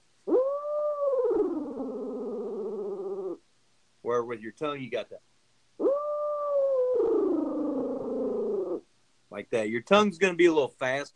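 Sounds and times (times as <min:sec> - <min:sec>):
owl hooter call with throat roll: 0:00.2 - 0:03.4, 0:05.8 - 0:08.9
speech: 0:04.1 - 0:05.3, 0:09.4 - 0:11.1.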